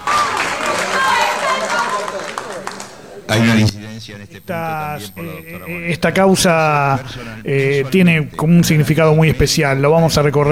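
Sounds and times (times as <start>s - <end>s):
audience at the Trelew massacre trial cheering and applauding the verdict: 0.0s - 5.1s
laughter: 0.0s - 10.5s
people shouting: 0.0s - 10.5s
speech: 3.3s - 10.5s.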